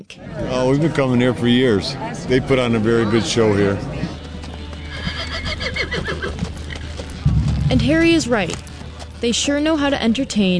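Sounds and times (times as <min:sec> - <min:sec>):
speech: 0:00.1 - 0:04.2, 0:07.8 - 0:08.6, 0:09.2 - 0:10.5
horse hooves: 0:03.8 - 0:10.5
horse neighing: 0:04.9 - 0:07.0.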